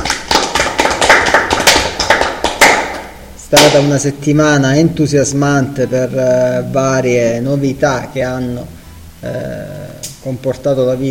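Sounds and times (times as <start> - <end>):
applause from a small group: 0.0 - 3.8
speech: 3.5 - 11.0.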